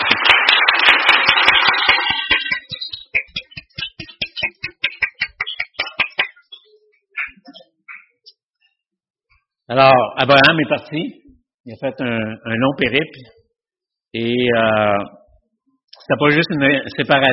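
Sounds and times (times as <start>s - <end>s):
audience applause: 0.0s - 6.2s
speech: 9.7s - 13.4s, 14.1s - 15.2s, 16.1s - 17.3s.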